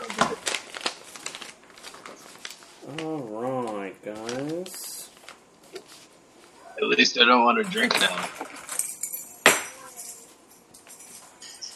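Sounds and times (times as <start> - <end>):
sheet of paper crinkling and rustling: 0.0 - 6.5
speech: 2.9 - 3.1, 7.0 - 8.5.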